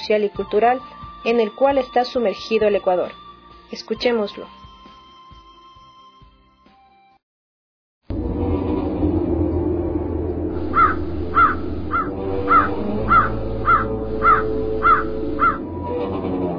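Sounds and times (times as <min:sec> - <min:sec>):
speech: 0:00.1 - 0:04.6
constant low rumbling background: 0:08.1 - 0:16.5
crows cawing: 0:10.6 - 0:15.7.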